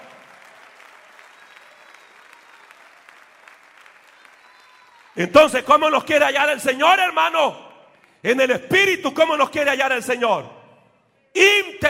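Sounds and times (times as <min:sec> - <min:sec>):
audience applause: 0:00.0 - 0:05.2
whistles: 0:01.2 - 0:02.8, 0:04.1 - 0:05.0
speech: 0:05.2 - 0:07.6, 0:08.2 - 0:10.6, 0:11.4 - 0:11.8.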